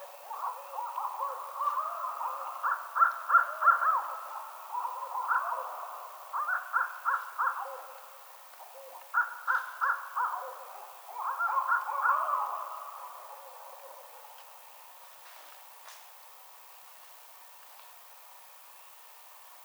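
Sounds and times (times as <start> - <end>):
barred owl hooting: 0.0 - 14.3.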